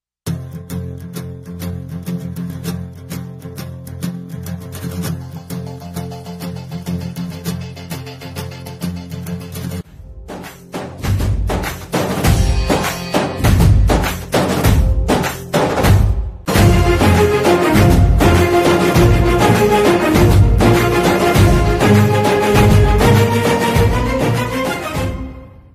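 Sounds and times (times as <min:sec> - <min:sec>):
background music ringtone: 0:05.4 - 0:25.7.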